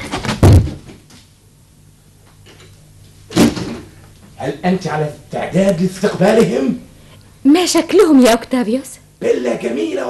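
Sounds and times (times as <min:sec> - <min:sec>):
door being closed: 0:03.3 - 0:03.9
speech: 0:04.4 - 0:06.8, 0:07.6 - 0:10.0.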